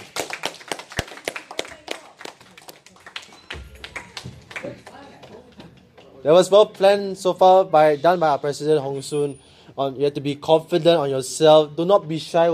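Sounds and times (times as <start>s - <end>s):
audience applause: 0.0s - 6.0s
speech: 6.2s - 12.5s.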